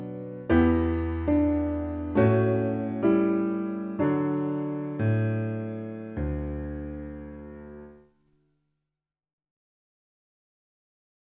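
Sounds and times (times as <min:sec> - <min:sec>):
piano: 0:00.0 - 0:08.6.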